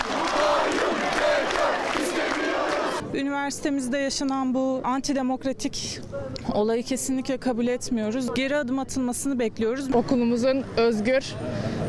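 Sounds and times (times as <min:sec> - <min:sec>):
student protest crowd chanting and shouting: 0:00.0 - 0:03.1
speech: 0:03.2 - 0:11.8.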